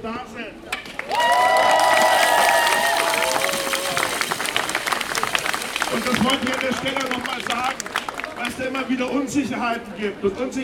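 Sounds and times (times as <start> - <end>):
speech: 0.0 - 0.7, 6.3 - 10.6
crowd applauding at a strike rally: 1.0 - 8.6
shouted voices: 1.1 - 4.2
cheering and high whistles: 1.1 - 5.4.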